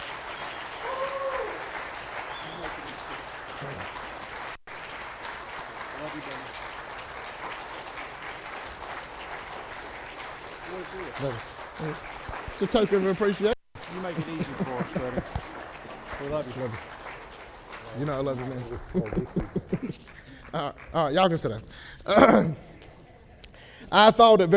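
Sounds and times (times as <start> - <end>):
scattered voices and cheers: 0.0 - 3.8
audience applause: 0.0 - 21.4
speech: 6.1 - 6.6, 10.8 - 15.4, 16.2 - 17.0, 18.0 - 22.7, 23.9 - 24.5
laughter: 13.9 - 15.8, 18.7 - 20.4.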